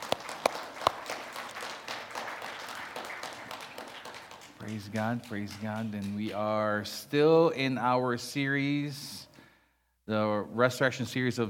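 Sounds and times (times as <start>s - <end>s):
audience applause: 0.0s - 6.2s
speech: 4.6s - 9.2s, 10.1s - 11.4s.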